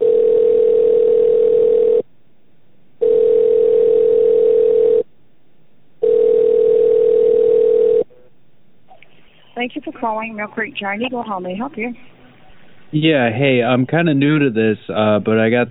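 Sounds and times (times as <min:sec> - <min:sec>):
telephone ringback tone while call is transferred: 0:00.0 - 0:02.0, 0:03.0 - 0:05.0, 0:06.0 - 0:08.1
speech: 0:09.7 - 0:12.1, 0:12.9 - 0:15.6.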